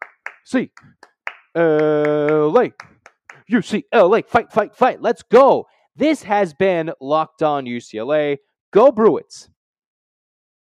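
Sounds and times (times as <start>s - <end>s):
sharp hand claps: 0.0s - 3.8s
speech: 0.5s - 2.9s, 3.5s - 9.5s
person calling out: 1.6s - 3.6s.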